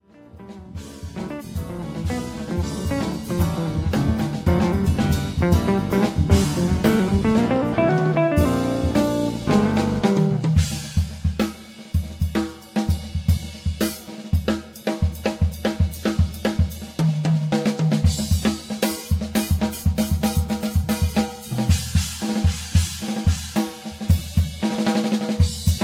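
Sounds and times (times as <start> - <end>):
drum solo: 0.2 - 25.8.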